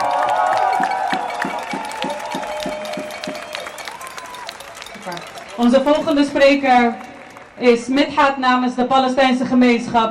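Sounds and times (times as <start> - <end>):
crowd clapping for a speaker at a pro-Palestinian rally in the Netherlands: 0.0 - 8.2
low rhythmic thumps: 0.6 - 8.2
speech: 5.6 - 7.0, 7.6 - 10.0.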